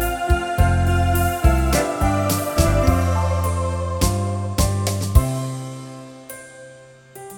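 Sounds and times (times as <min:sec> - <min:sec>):
8-beat drum rhythm: 0:00.0 - 0:05.7.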